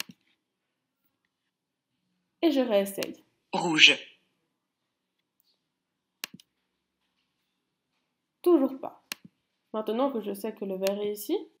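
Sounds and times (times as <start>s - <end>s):
speech: 2.5s - 4.1s, 9.8s - 11.5s
computer mouse click in an online memory card game: 6.2s - 6.6s, 9.0s - 9.4s, 10.8s - 11.0s.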